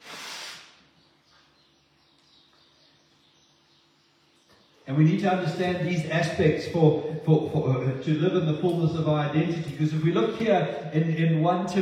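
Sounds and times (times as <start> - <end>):
person blowing nose: 0.0 - 0.8
speech: 4.9 - 11.7.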